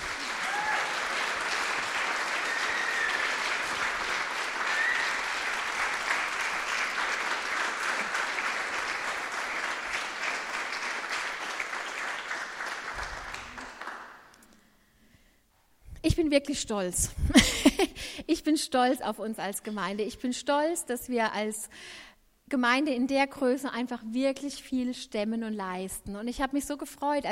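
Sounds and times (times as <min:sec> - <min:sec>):
audience applause: 0:00.0 - 0:14.3
speech: 0:16.1 - 0:27.3.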